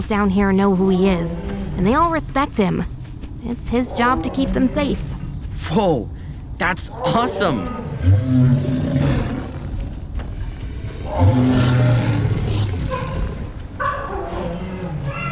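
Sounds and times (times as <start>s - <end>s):
speech: 0.0s - 9.1s
animated cheetah deep throaty roaring: 6.9s - 15.2s.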